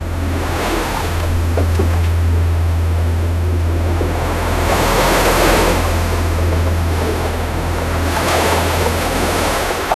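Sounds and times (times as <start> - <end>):
ship sailing in sea: 0.0 - 9.9.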